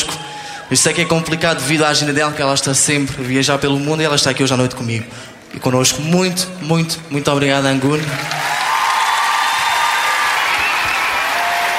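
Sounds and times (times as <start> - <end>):
speech: 0.7 - 8.5
audience applause: 7.8 - 11.7.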